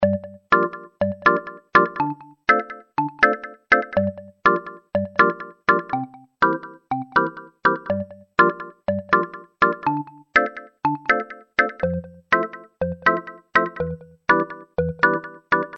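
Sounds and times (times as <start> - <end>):
house music ringtone: 0.0 - 15.7.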